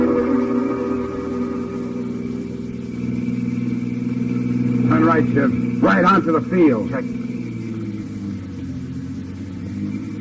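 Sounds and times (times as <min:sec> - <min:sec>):
car engine revving while driving: 0:00.0 - 0:10.2
speech: 0:05.2 - 0:07.2.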